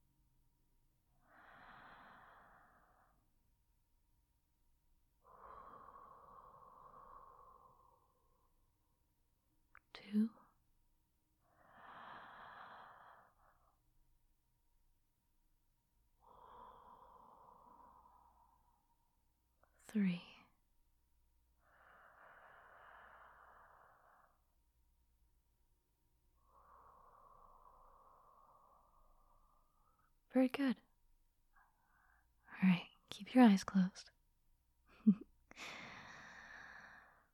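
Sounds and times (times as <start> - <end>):
person taking slow deep breaths during a guided relaxation: 1.2 - 3.2, 5.2 - 8.6, 11.4 - 13.8, 16.2 - 19.2, 21.6 - 24.6, 26.4 - 30.0, 35.5 - 37.3
speech: 10.1 - 10.4, 19.9 - 20.3, 30.4 - 30.8, 32.6 - 34.1, 35.0 - 35.8.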